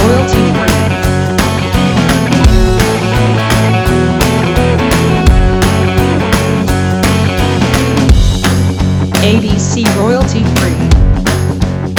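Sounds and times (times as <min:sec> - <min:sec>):
rock music: 0:00.0 - 0:11.9.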